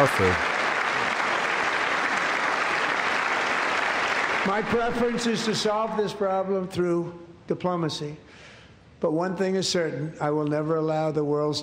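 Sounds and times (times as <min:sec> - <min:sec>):
speech: 0:00.0 - 0:00.5, 0:04.5 - 0:11.6
crowd clapping: 0:00.0 - 0:05.4.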